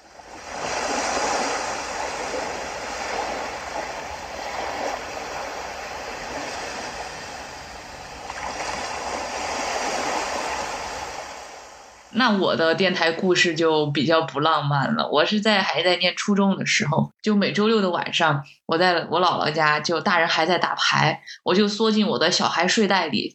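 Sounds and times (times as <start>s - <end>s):
ocean waves: 0.0s - 13.9s
speech: 12.2s - 23.3s.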